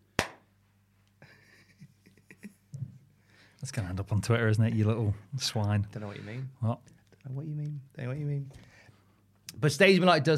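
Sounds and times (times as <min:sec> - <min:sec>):
single hand clap: 0:00.2 - 0:00.4
speech: 0:03.6 - 0:08.7, 0:09.6 - 0:10.3.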